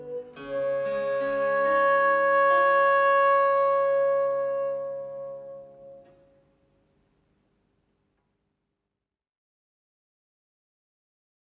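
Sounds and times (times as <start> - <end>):
sonata in G minor: 0.0 - 7.1.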